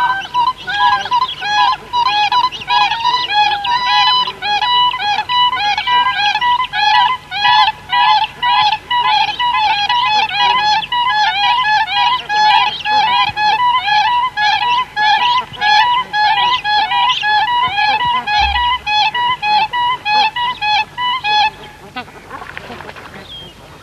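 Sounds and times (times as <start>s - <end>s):
Siberian crane calls: 0.0s - 21.6s.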